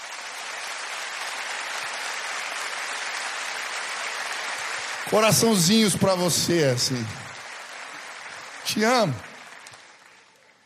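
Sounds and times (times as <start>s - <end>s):
audience applause: 0.0s - 10.6s
speech: 5.1s - 7.3s, 8.7s - 9.2s.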